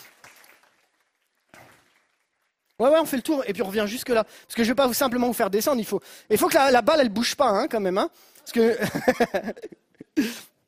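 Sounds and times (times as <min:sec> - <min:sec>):
audience applauding: 0:00.0 - 0:02.7
speech: 0:02.8 - 0:10.4.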